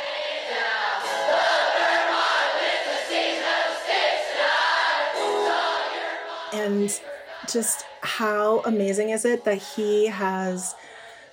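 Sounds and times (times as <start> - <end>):
huge concert crowd screaming a chorus line in unison: 0.0 - 7.4
speech: 6.7 - 10.9.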